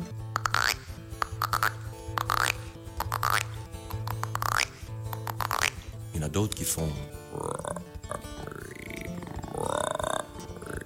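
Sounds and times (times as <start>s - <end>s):
voice imitating frog calls: 0.4s - 6.0s, 7.2s - 10.8s
speech: 6.2s - 7.5s.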